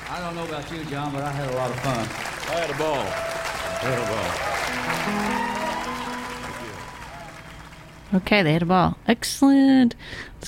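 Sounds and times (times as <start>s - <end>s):
recorded clapping: 0.0s - 8.3s
speech: 0.1s - 5.6s, 8.1s - 10.4s.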